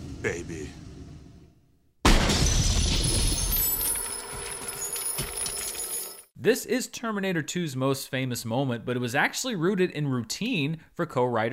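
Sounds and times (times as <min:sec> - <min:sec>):
speech: 0:00.2 - 0:00.9, 0:06.4 - 0:11.5
frozen body shattering apart: 0:02.1 - 0:05.8
cascade of tinkling glassy fragments: 0:02.9 - 0:06.3.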